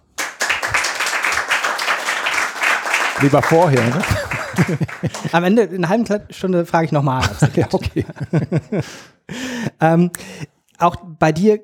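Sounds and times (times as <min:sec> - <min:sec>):
crowd clapping: 0:00.0 - 0:05.5
laughter: 0:03.1 - 0:05.6, 0:07.2 - 0:09.1
speech: 0:03.2 - 0:11.6.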